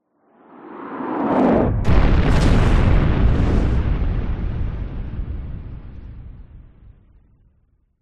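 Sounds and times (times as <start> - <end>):
incoming missile whizzing by: 1.4 - 4.9
missile explosion: 1.4 - 7.8.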